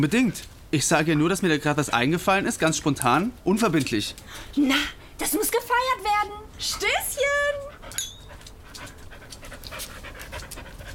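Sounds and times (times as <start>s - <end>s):
speech: 0.0s - 7.7s
dog panting: 6.6s - 10.9s.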